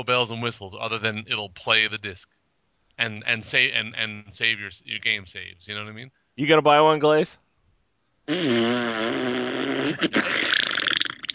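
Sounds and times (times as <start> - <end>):
speech: 0.0 - 2.4, 3.0 - 7.4, 8.3 - 10.6
loud fart: 8.3 - 11.3.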